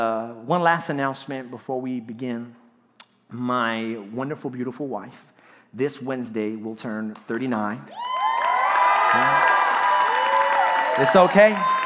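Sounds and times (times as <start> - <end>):
speech: 0.0 - 2.6, 3.3 - 8.0, 9.1 - 9.6, 11.0 - 11.8
crowd applause: 7.9 - 11.8.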